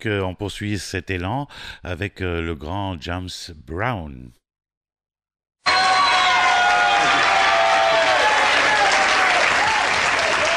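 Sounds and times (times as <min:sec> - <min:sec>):
speech: 0:00.0 - 0:04.4
crowd applause: 0:05.7 - 0:10.5.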